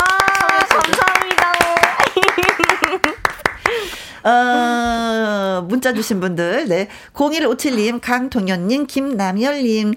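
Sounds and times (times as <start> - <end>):
people clapping: 0.0 - 4.1
speech: 4.2 - 5.0, 5.6 - 9.9.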